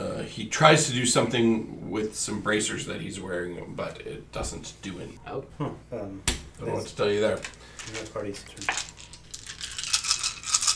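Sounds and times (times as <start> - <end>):
speech: 0.4 - 8.9
many dice tumbling and knocking together: 7.4 - 10.7.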